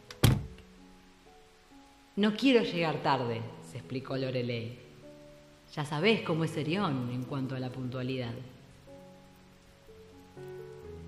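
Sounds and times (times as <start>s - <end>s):
car passenger door slamming shut: 0.2s - 0.6s
speech: 2.2s - 4.8s, 5.7s - 8.6s.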